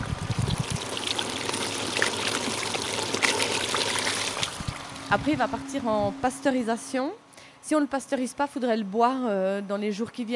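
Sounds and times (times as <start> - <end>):
juice streaming out of a hydraulic fruit press: 0.0 - 5.1
speech: 5.1 - 10.3.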